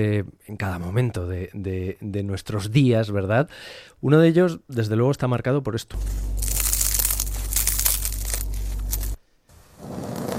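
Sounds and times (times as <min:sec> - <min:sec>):
speech: 0:00.0 - 0:06.5
low steady hum: 0:05.9 - 0:09.4
crusty bread crunching as it is cut: 0:06.0 - 0:09.2.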